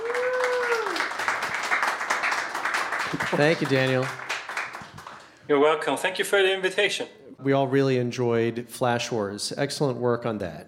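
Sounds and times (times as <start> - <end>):
audience applause for a guest: 0.0 - 5.3
speech: 3.1 - 4.2, 5.5 - 10.6.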